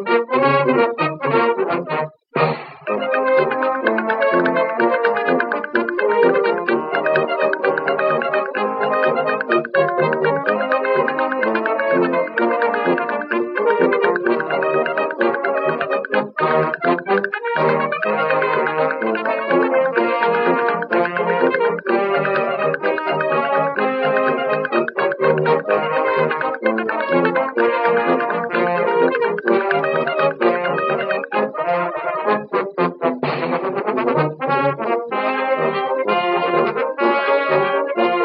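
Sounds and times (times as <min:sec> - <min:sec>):
ragtime music: 0:00.0 - 0:38.2.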